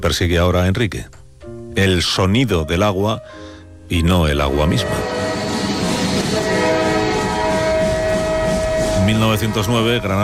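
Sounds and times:
speech: 0.0s - 1.2s, 1.8s - 5.2s, 9.1s - 10.2s
train rolling along the rails: 4.8s - 10.2s.

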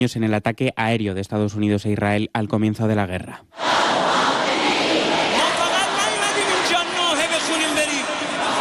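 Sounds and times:
speech: 0.0s - 4.0s
crowd of thousands of mourners shouting at a funeral at the Mosalla mosque in Tehran: 3.6s - 8.5s.

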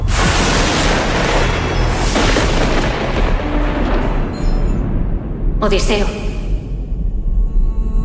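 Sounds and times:
thunder rumbling in a film trailer: 0.0s - 7.9s
speech: 5.6s - 6.3s.

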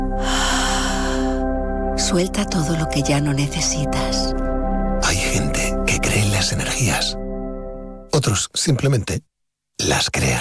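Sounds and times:
soft sustained musical drone: 0.0s - 8.1s
deep exhalation: 0.1s - 1.5s
speech: 2.1s - 4.5s, 6.4s - 7.2s, 8.2s - 10.4s.

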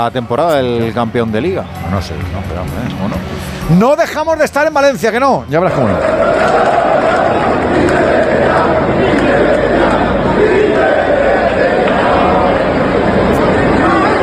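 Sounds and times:
speech: 0.0s - 6.7s
crowd shouting in indignation: 5.6s - 14.2s.

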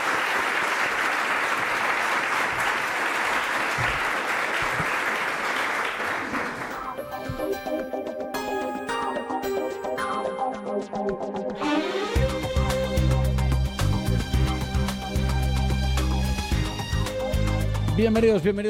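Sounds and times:
audience applause: 0.0s - 7.2s
tuneful music passage: 6.7s - 18.6s.

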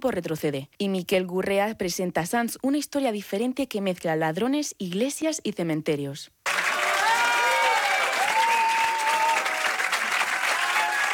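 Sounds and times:
speech: 0.0s - 6.6s
warm farewell ovation by the Academia de Cine: 6.5s - 11.1s.

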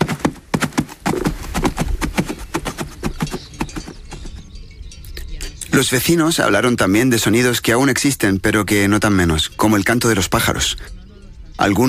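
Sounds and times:
hooves of working animals clip-clopping on a hard surface: 0.0s - 5.1s
speech: 5.8s - 11.0s, 11.6s - 11.8s.

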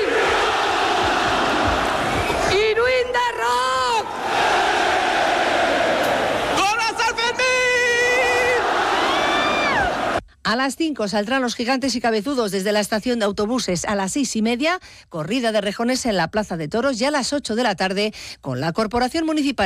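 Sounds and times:
crowd cheering at festival rocket launch: 0.0s - 10.2s
whoops and shouts: 7.8s - 10.2s
speech: 10.6s - 19.6s.

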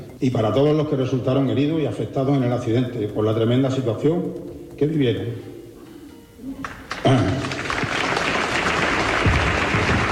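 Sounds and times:
speech: 0.2s - 5.5s
crowd applause at a ceremony: 6.6s - 10.0s.

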